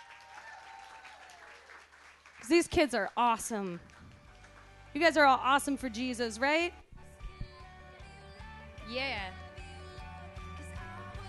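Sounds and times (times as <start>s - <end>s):
audience applause: 0.0s - 2.8s
speech: 2.5s - 3.9s, 5.0s - 6.8s, 8.9s - 9.4s.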